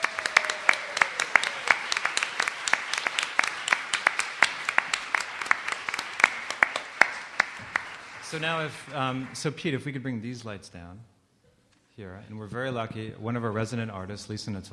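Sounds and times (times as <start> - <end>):
audience applause: 0.0 - 9.9
speech: 8.3 - 11.1, 12.0 - 14.7.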